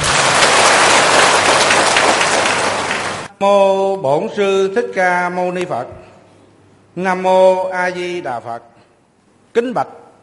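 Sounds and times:
crowd clapping: 0.0s - 3.3s
speech: 3.4s - 6.1s, 7.0s - 8.7s, 9.6s - 10.0s.

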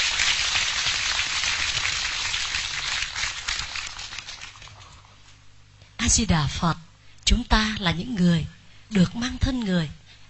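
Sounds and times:
audience applause: 0.0s - 4.9s
speech: 6.1s - 6.8s, 7.4s - 10.2s.

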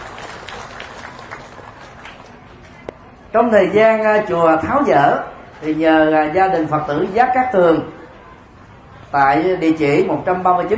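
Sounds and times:
applause for Buddhist lay donors: 0.0s - 2.8s
speech: 3.3s - 8.0s, 9.1s - 10.7s.

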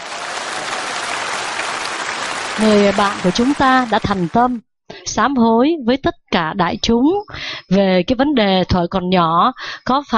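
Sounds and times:
audience applause: 0.0s - 4.6s
speech: 2.6s - 10.1s.

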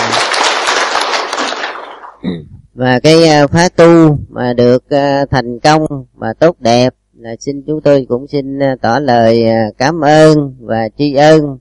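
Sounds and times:
audience applause at a Buddhist meditation retreat ceremony: 0.0s - 2.2s
speech: 2.2s - 11.6s.

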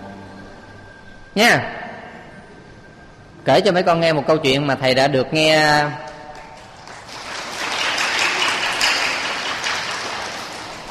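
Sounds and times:
speech: 1.4s - 1.8s, 3.4s - 6.0s
audience applause for a teacher telling a story to children: 6.0s - 10.9s.

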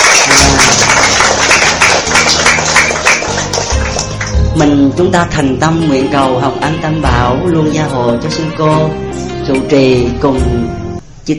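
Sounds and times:
audience applause: 0.0s - 4.5s
speech: 4.6s - 11.3s.

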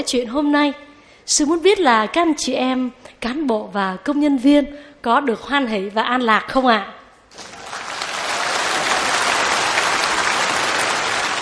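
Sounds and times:
speech: 0.0s - 7.5s
audience applause: 7.3s - 11.4s.

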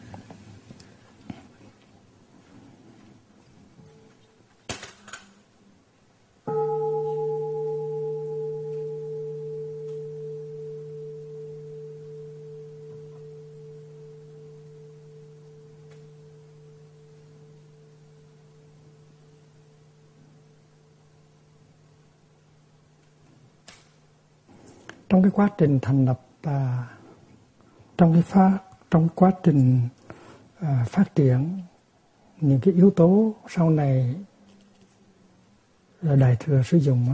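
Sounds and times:
bell ringing: 6.5s - 20.7s
speech: 25.1s - 27.0s, 28.0s - 30.0s, 30.6s - 31.7s, 32.4s - 34.3s, 36.0s - 37.1s.

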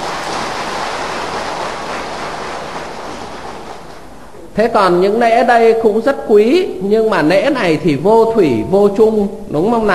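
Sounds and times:
applause: 0.0s - 4.2s
speech: 4.6s - 9.9s.

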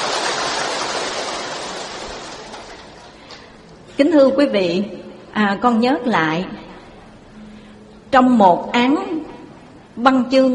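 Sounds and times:
applause: 0.0s - 3.5s
speech: 4.0s - 6.6s, 8.1s - 9.1s, 10.0s - 10.5s.

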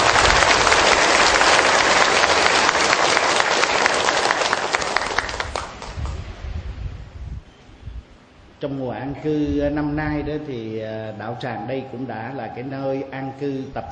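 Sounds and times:
long round of applause from large crowd: 0.0s - 6.2s
speech: 8.6s - 13.8s.

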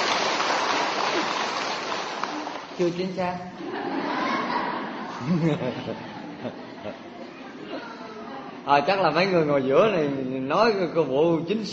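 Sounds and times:
round of applause: 0.0s - 2.8s
speech: 2.8s - 4.2s, 5.2s - 7.1s, 8.7s - 11.7s
laughter: 3.5s - 8.0s.

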